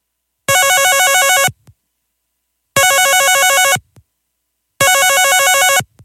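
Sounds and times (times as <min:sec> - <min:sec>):
telephone ringing on outgoing call: 0:00.5 - 0:01.6, 0:02.8 - 0:03.8, 0:04.8 - 0:05.9.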